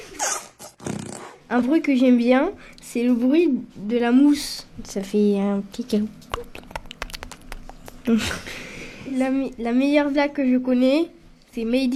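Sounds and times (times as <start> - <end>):
speech: 1.5 - 6.6, 8.0 - 11.9
gooey slime squelching in a pot: 6.3 - 8.1.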